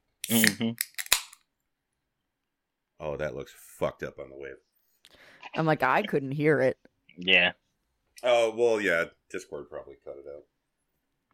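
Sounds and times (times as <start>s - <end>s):
sparkling water can opening: 0.2s - 1.4s
speech: 0.3s - 0.9s, 3.0s - 7.6s, 8.2s - 10.5s.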